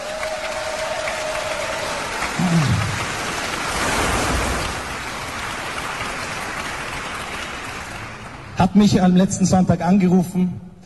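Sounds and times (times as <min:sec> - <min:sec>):
audience applause: 0:00.0 - 0:08.6
speech: 0:08.6 - 0:10.7.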